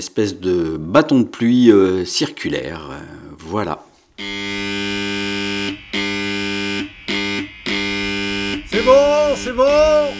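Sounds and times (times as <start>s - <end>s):
speech: 0.0s - 4.3s, 8.8s - 10.1s
siren: 4.2s - 10.1s.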